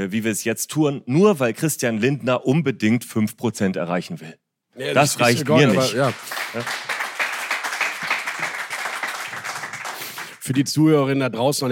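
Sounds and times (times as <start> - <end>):
speech: 0.0 - 6.9, 10.5 - 11.6
SPD member of parliament clapping loudly: 5.9 - 10.4.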